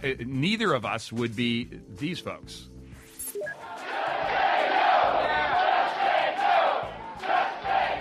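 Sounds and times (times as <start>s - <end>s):
speech: 0.0s - 2.7s
healthcare protesters chanting outside a town hall in Tampa, Florida: 3.6s - 7.9s.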